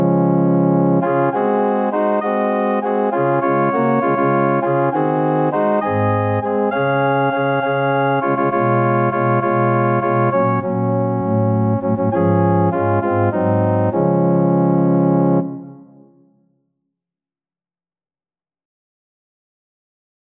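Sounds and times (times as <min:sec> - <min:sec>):
organ: 0:00.0 - 0:16.1.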